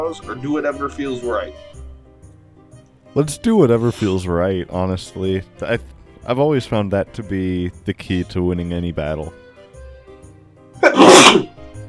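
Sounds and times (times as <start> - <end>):
speech: 0.0 - 1.8, 3.1 - 9.4
person sneezing: 4.0 - 4.2, 10.8 - 11.5.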